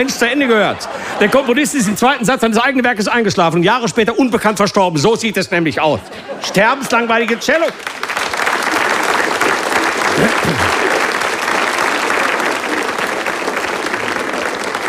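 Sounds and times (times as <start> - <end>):
laughter: 0.0 - 2.8, 5.8 - 7.8, 8.8 - 11.2
speech: 0.0 - 8.1
audience applause: 7.2 - 14.8.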